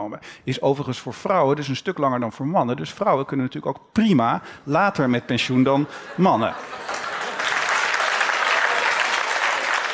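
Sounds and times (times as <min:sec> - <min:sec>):
speech: 0:00.0 - 0:07.0
half the audience applauding: 0:06.6 - 0:09.9.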